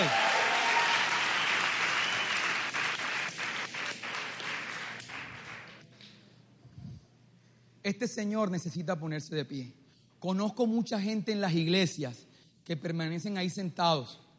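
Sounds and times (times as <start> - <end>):
audience applause: 0.0 - 5.8
speech: 7.9 - 14.2.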